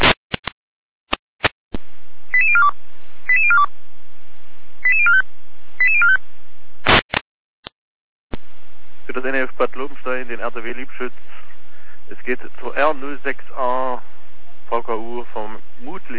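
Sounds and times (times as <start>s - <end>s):
radio dispatch alerting tones: 2.4s - 2.7s, 3.3s - 3.7s, 4.8s - 5.2s, 5.8s - 6.2s
speech: 9.2s - 11.4s, 12.1s - 14.1s, 14.7s - 16.1s.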